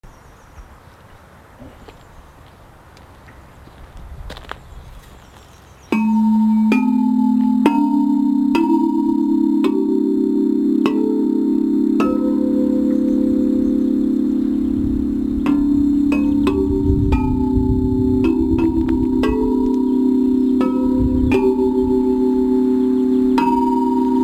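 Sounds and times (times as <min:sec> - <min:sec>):
tubular bells: 0:05.9 - 0:24.2.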